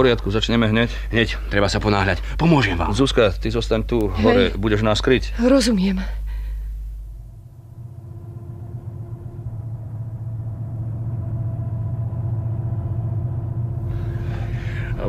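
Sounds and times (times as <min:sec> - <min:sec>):
speech: 0:00.0 - 0:06.2
distant car engines rumbling: 0:07.2 - 0:15.0.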